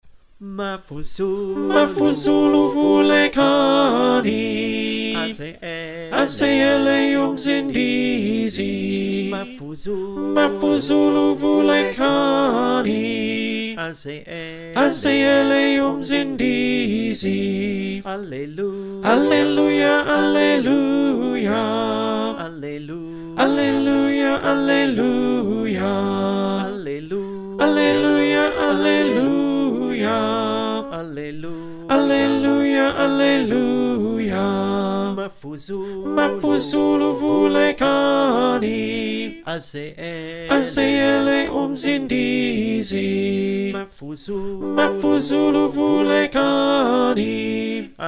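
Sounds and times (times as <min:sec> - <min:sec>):
choir singing: 0:00.4 - 0:48.0
tenor voice: 0:27.6 - 0:29.5.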